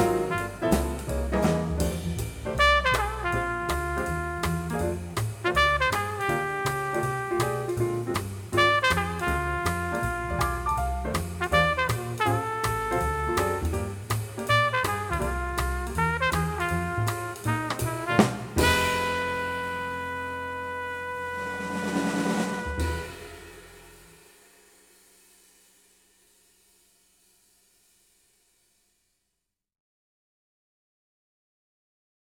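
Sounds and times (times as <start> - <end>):
groove blues trumpet: 0.0 - 24.1.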